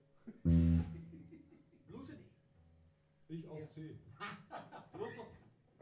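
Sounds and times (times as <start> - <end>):
laughter: 0.3 - 1.9, 4.2 - 5.4
blues jam: 0.5 - 1.2.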